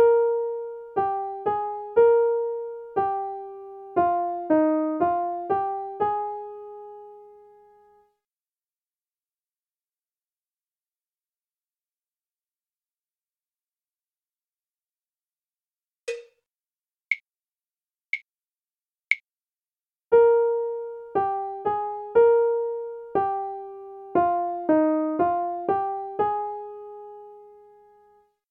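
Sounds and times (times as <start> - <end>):
melody: 0.1 - 7.8, 20.2 - 27.8.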